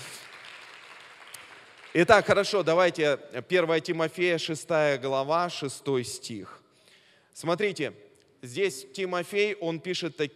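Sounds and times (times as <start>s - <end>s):
audience applause: 0.0s - 2.1s
speech: 2.0s - 6.6s, 7.4s - 10.3s.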